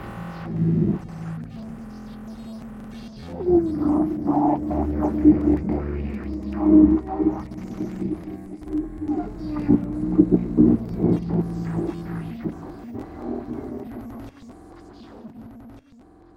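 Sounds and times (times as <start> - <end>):
guardian mech loop: 3.2 - 14.4.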